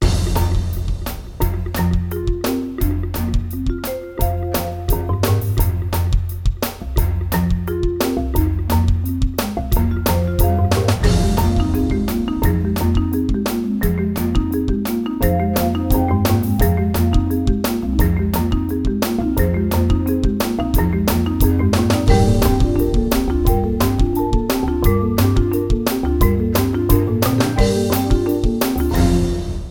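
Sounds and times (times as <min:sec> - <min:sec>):
energetic mallet percussion: 0:00.0 - 0:29.7.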